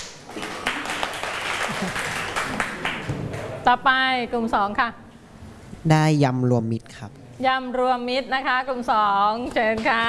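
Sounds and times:
room full of people clapping for a group: 0:00.0 - 0:03.6
speech: 0:01.8 - 0:02.1, 0:03.7 - 0:05.0, 0:05.8 - 0:10.0.

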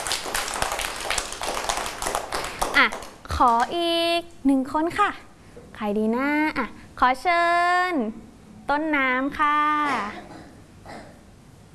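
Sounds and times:
children clapping for a classmate: 0:00.0 - 0:03.8
speech: 0:02.8 - 0:10.3.

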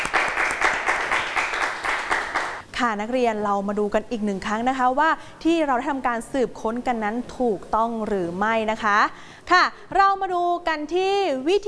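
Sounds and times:
pupils clapping for a student in a classroom: 0:00.0 - 0:02.6
speech: 0:02.8 - 0:11.6.

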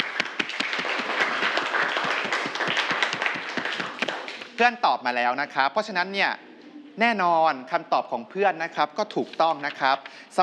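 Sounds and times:
classroom students clapping: 0:00.0 - 0:04.7
speech: 0:04.6 - 0:06.4, 0:07.0 - 0:10.4.

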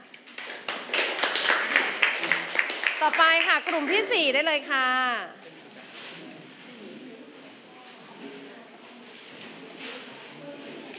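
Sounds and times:
group applause for presenters: 0:00.2 - 0:04.1
speech: 0:03.0 - 0:05.4.

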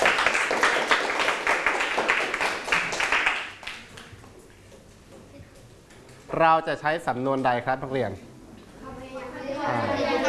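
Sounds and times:
classroom applause for a student: 0:00.0 - 0:04.1
speech: 0:06.4 - 0:08.3, 0:09.6 - 0:10.1.

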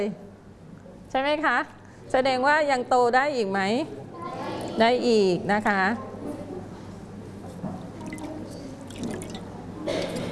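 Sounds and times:
speech: 0:00.0 - 0:00.3, 0:01.1 - 0:04.0, 0:04.8 - 0:06.1
running water rinsing vegetables: 0:07.9 - 0:10.2.

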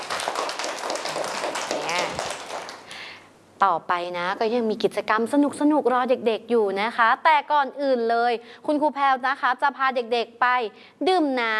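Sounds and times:
crowd clapping hands: 0:00.0 - 0:03.0
speech: 0:03.6 - 0:11.5.

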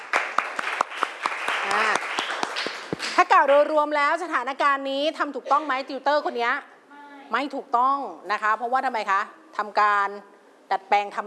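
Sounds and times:
classroom applause: 0:00.0 - 0:03.6
speech: 0:03.3 - 0:06.7, 0:07.3 - 0:11.2.

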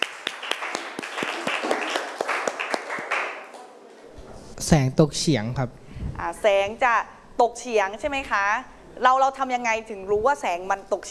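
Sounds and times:
classroom applause: 0:00.0 - 0:03.7
speech: 0:04.6 - 0:11.0.

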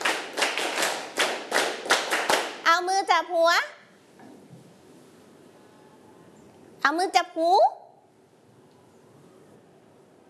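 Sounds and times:
children clapping hands on a teacher's command in a classroom: 0:00.0 - 0:02.7
speech: 0:02.8 - 0:03.8, 0:06.8 - 0:07.8.

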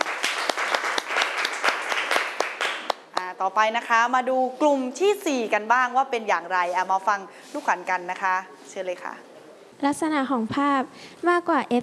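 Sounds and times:
applause: 0:00.0 - 0:03.3
speech: 0:03.4 - 0:11.8.

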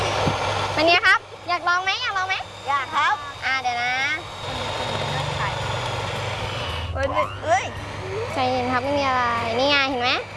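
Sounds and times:
whirring while beating eggs until white and foamy: 0:00.0 - 0:10.3
speech: 0:00.8 - 0:04.4, 0:07.0 - 0:10.3.

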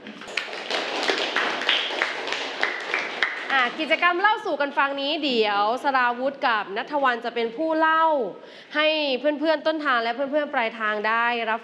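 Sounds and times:
applause: 0:00.0 - 0:03.8
speech: 0:03.6 - 0:11.6.

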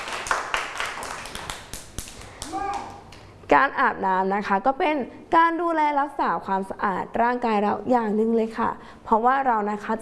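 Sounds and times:
children clapping hands: 0:00.0 - 0:03.3
speech: 0:03.5 - 0:10.0.

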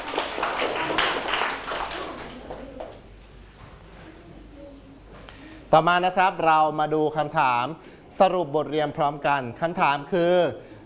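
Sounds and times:
classroom children clapping for a correct answer: 0:00.0 - 0:03.1
speech: 0:05.7 - 0:10.7.

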